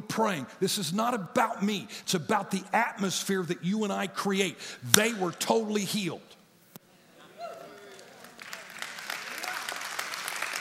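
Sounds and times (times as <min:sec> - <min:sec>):
speech: 0:00.1 - 0:06.4
audience applause: 0:07.5 - 0:10.5.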